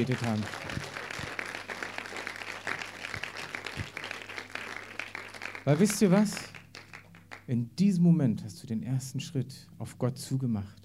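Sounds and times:
speech: 0.0 - 0.7, 5.6 - 6.5, 7.5 - 10.8
audience applause: 0.0 - 7.5.

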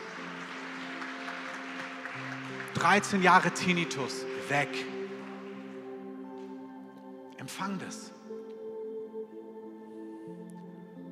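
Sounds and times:
crowd applause: 0.0 - 5.8
speech: 2.8 - 5.0, 7.5 - 8.2.

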